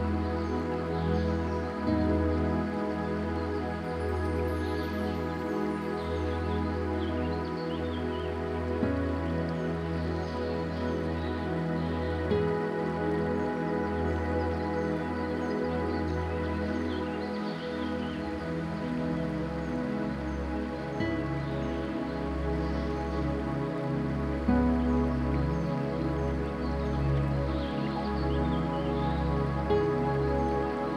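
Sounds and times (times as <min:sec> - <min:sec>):
spa ambience: 0:00.0 - 0:30.9.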